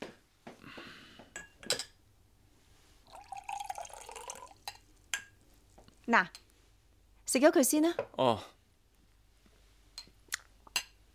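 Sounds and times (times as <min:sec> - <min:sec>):
water poured into a glass: 0:03.0 - 0:04.8
speech: 0:06.1 - 0:06.4, 0:07.3 - 0:08.6.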